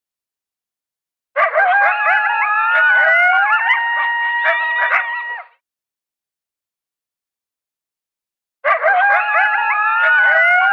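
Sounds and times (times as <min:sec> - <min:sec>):
coyotes yipping and howling: 0:01.4 - 0:05.5, 0:08.6 - 0:10.7.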